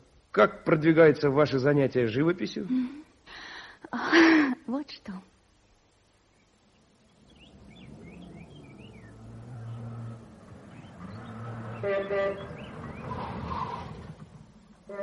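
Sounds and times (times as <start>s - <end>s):
speech: 0.4s - 3.0s, 3.8s - 5.3s, 11.8s - 12.6s
car driving up and approaching: 6.7s - 15.0s.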